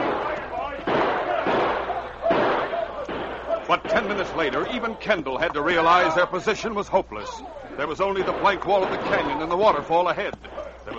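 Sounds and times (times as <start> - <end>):
gunshots: 0.0 - 4.9, 8.0 - 10.6
speech: 3.8 - 10.9.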